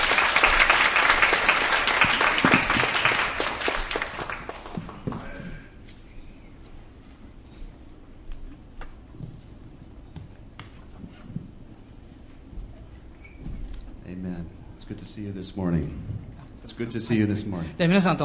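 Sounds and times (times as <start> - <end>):
audience applause welcoming a guest: 0.0 - 5.7
speech: 15.2 - 16.2, 16.8 - 18.2.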